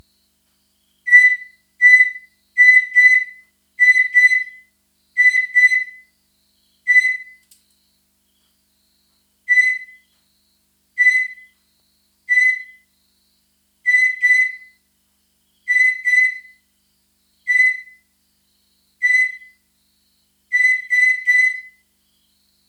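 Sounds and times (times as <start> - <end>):
katydid calls of loud shrill pulses: 1.1 - 4.6, 5.2 - 6.0, 6.9 - 7.4, 9.5 - 10.0, 11.0 - 11.4, 12.3 - 12.8, 13.9 - 14.7, 15.7 - 16.6, 17.5 - 17.9, 19.0 - 19.5, 20.5 - 21.8.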